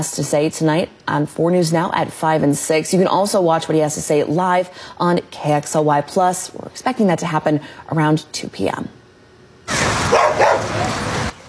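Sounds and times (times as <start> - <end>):
speech: 0.0 - 9.0
dogs barking and yipping at a public swimming pool: 10.0 - 11.0.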